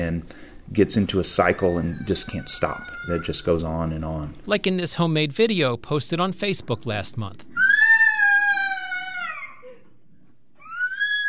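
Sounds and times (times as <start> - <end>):
speech: 0.1 - 7.5
child screaming: 1.7 - 3.3, 7.5 - 9.8, 10.6 - 11.2.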